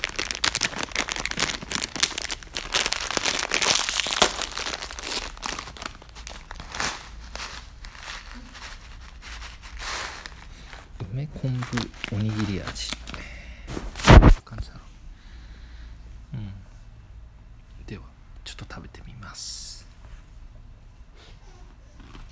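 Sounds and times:
plastic bag of Baby Star Ramen snack crinkling as it is opened: 0.0 - 14.4.

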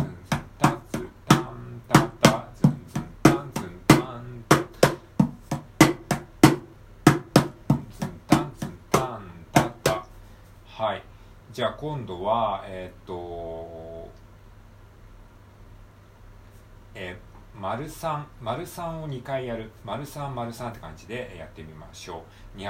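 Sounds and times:
mini cajon drumming with fills: 0.0 - 10.1
speech: 11.6 - 13.8, 17.0 - 22.6.

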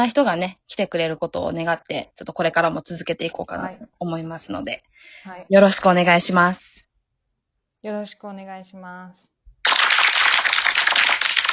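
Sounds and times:
speech: 0.0 - 6.8, 7.8 - 9.3
applause sound effect: 9.6 - 11.5.

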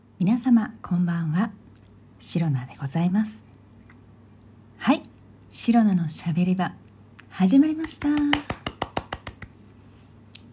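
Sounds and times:
speech: 0.2 - 1.6, 2.2 - 3.5, 4.8 - 8.6
lone person clapping hands in self applause: 7.8 - 9.6.

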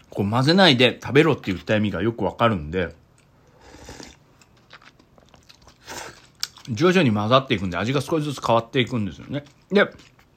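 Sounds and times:
speech: 0.2 - 3.0, 6.7 - 10.1
chewing and crunching Nissin Nakiryu dandan noodles in sesame soup: 2.9 - 10.3.

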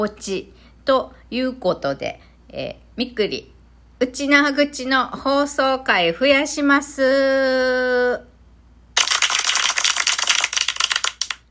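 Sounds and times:
speech: 0.0 - 8.3
applause sound effect: 9.0 - 11.4.

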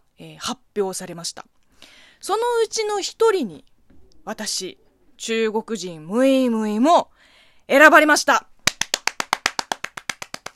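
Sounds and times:
speech: 0.4 - 1.6, 2.2 - 7.1, 7.7 - 8.5
applause: 8.7 - 10.5.

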